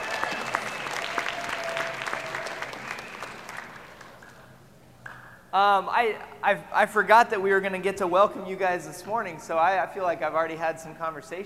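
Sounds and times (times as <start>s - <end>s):
crowd applause: 0.0s - 4.5s
speech: 5.5s - 11.4s.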